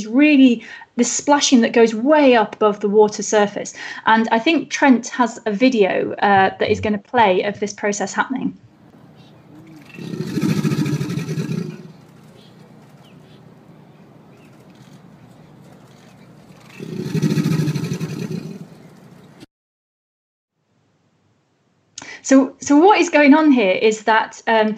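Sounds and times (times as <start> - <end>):
speech: 0.0 - 8.7, 22.3 - 24.7
low hum: 8.5 - 19.4
alligator mating call: 8.8 - 19.4.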